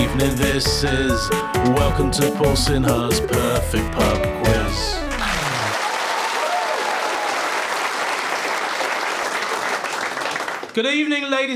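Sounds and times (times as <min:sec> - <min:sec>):
speech: 0:00.2 - 0:05.0, 0:10.8 - 0:11.5
audience applause: 0:05.0 - 0:10.8.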